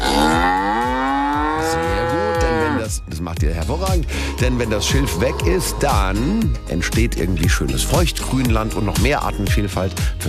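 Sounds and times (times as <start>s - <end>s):
cattle mooing: 0.0s - 2.9s, 4.2s - 6.4s
speech: 3.3s - 10.2s.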